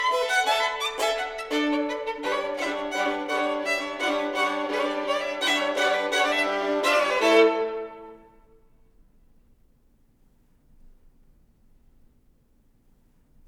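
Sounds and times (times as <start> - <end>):
duet for two violins: 0.0 - 8.5.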